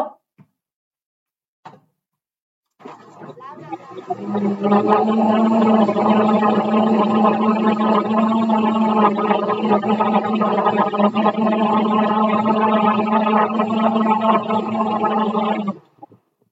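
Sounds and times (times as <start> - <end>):
blender blending pumpkin: 2.8 - 15.8.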